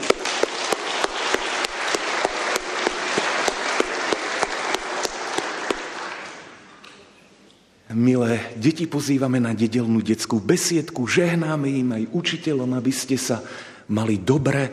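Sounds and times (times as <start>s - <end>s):
applause: 0.0s - 6.7s
speech: 8.0s - 14.7s.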